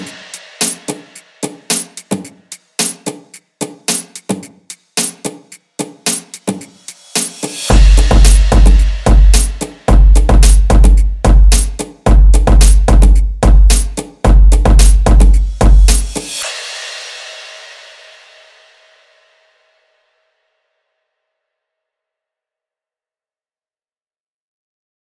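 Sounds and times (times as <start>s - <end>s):
designed drums: 0.0s - 18.0s.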